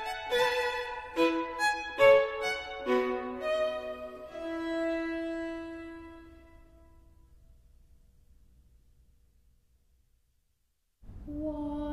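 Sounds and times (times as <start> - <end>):
violin: 0.0 - 7.0.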